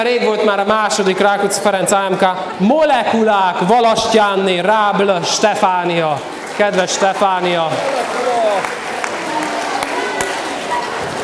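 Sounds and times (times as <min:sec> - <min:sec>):
speech: 0:00.0 - 0:08.0
audience applause: 0:06.2 - 0:11.2.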